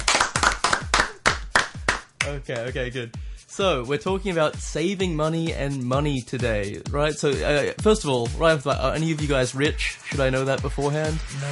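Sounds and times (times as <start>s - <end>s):
small group clapping hands: 0.0s - 2.8s
speech: 2.3s - 11.5s.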